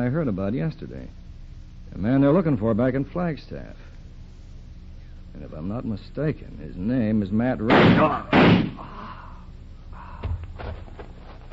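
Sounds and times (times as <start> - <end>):
speech: 0.0 - 1.2, 1.9 - 3.9, 5.4 - 9.0
gunshot: 7.7 - 8.8.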